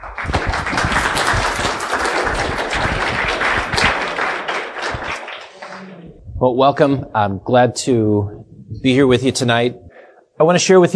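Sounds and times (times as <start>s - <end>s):
audience applause welcoming a speaker: 0.0s - 6.0s
speech: 6.4s - 9.8s, 10.4s - 10.9s.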